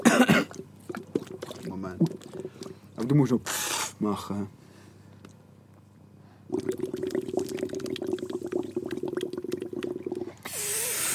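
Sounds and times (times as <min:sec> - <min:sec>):
water bubbling in a bong: 0:00.0 - 0:03.2, 0:06.5 - 0:10.4
speech: 0:03.1 - 0:04.6.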